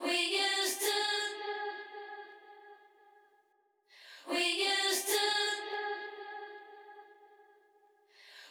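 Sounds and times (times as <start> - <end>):
a cappella vocal loop: 0.0 - 3.1, 4.0 - 7.5.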